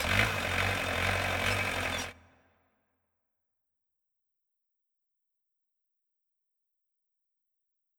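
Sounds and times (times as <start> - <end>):
fan starting: 0.0 - 2.1.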